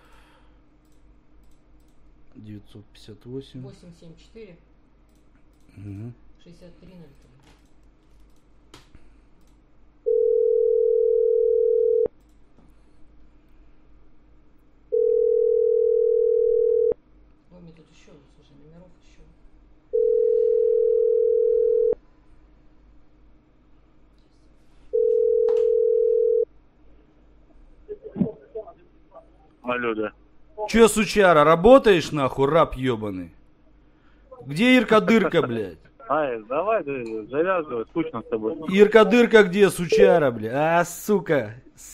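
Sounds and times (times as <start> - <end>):
speech: 2.4 - 4.7, 5.8 - 7.6, 29.8 - 33.4, 34.4 - 41.9
telephone line tone while dialing a number: 10.1 - 12.1, 14.9 - 17.0, 19.9 - 22.0, 24.9 - 26.5, 39.9 - 40.3.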